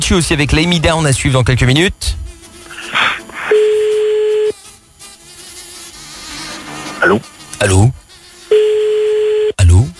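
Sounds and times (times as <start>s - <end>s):
speech: 0.1s - 2.2s, 7.0s - 8.0s
telephone line noise: 1.8s - 4.6s, 6.2s - 9.9s
telephone ringing tone: 3.5s - 4.5s, 8.5s - 9.6s.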